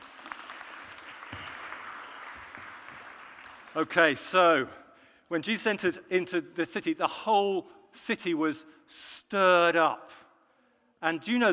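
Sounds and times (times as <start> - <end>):
group applause: 0.0 - 4.1
speech: 3.8 - 10.2, 11.0 - 11.5.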